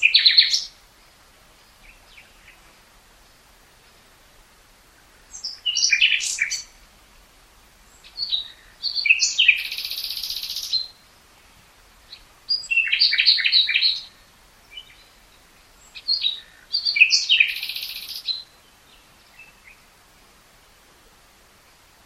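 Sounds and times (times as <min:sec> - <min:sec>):
common nightingale singing: 0:00.0 - 0:02.7, 0:05.2 - 0:06.8, 0:07.9 - 0:11.0, 0:12.1 - 0:19.9.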